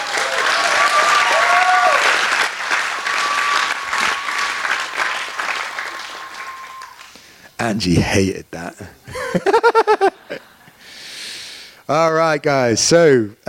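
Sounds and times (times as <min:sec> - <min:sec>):
audience applause: 0:00.0 - 0:07.4
speech: 0:07.6 - 0:09.8, 0:11.9 - 0:13.4
laughter: 0:09.1 - 0:10.8.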